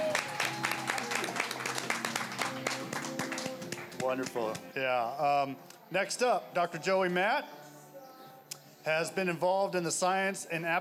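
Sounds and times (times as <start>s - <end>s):
audience applause: 0.0s - 4.6s
speech: 4.1s - 7.6s, 8.8s - 10.7s.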